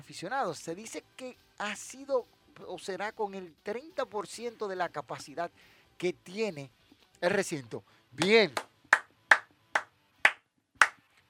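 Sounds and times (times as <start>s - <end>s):
speech: 0.1s - 8.7s
sharp hand claps: 8.2s - 11.1s.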